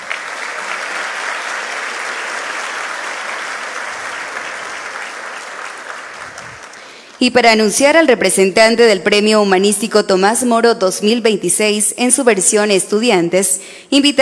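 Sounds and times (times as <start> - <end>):
audience applause: 0.0 - 7.2
speech: 7.2 - 14.2.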